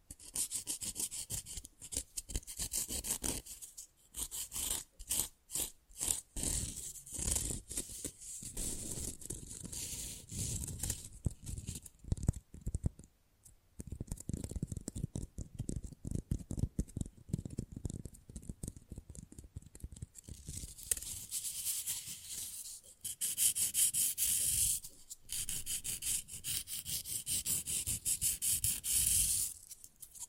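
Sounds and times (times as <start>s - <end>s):
fast rough nail filing: 0.1s - 12.8s, 14.0s - 30.2s.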